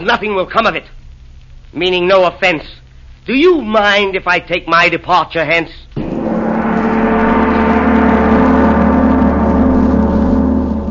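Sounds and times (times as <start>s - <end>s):
speech: 0.0s - 1.0s, 1.7s - 5.8s
big brass gong struck: 6.0s - 10.8s.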